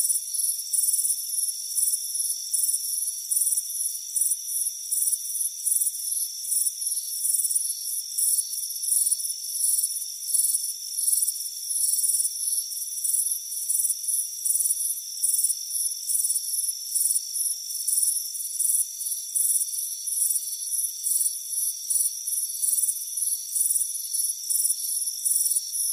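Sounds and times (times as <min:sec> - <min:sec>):
cricket chirps: 0:00.0 - 0:25.9.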